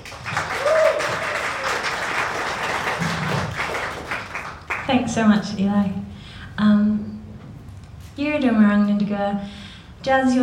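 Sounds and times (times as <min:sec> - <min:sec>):
audience applause welcoming a visual artist and poet on stage: 0:00.0 - 0:04.9
speech: 0:04.9 - 0:06.0, 0:06.6 - 0:07.1, 0:08.2 - 0:10.4.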